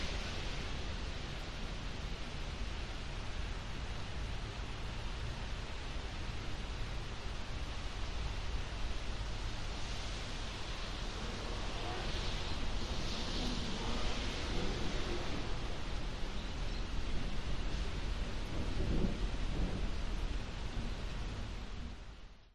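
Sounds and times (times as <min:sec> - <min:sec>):
rain on an urban industrial estate: 0:00.0 - 0:22.5
thunder over an urban industrial estate: 0:10.8 - 0:22.1.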